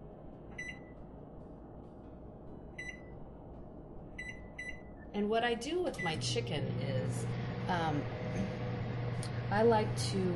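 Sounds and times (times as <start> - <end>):
microwave oven heating food: 0.0 - 10.3
speech: 5.2 - 8.6, 9.2 - 10.3.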